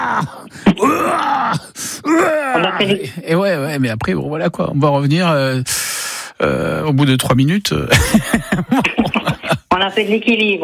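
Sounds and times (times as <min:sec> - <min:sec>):
person gasping during exercise: 0:00.0 - 0:03.2, 0:05.7 - 0:06.7
person shouting strained groaning cries during exercise: 0:00.0 - 0:03.3
speech: 0:00.2 - 0:09.0, 0:09.8 - 0:10.6
laughter: 0:07.9 - 0:09.8.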